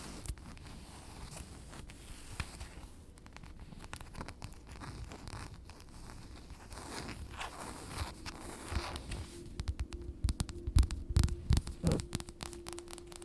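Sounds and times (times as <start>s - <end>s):
dress fabric scratching and rustling: 0.0s - 13.2s
low hum: 7.2s - 13.2s.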